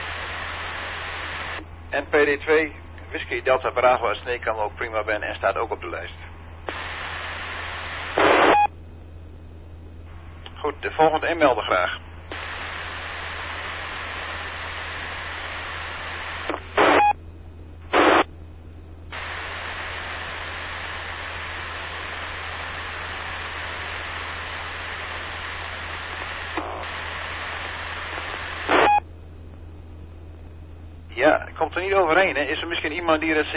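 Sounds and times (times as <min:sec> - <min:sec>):
radio static hiss: 0:00.0 - 0:08.7, 0:10.1 - 0:17.2, 0:17.8 - 0:18.3, 0:19.1 - 0:29.1, 0:31.0 - 0:33.5
quiet hum: 0:00.0 - 0:33.5
speech: 0:01.9 - 0:06.8, 0:10.7 - 0:12.0, 0:32.0 - 0:33.5.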